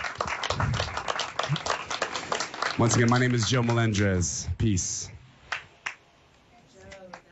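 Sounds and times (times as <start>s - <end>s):
audience clapping: 0.0s - 4.4s, 5.4s - 6.1s
speech: 2.8s - 5.2s.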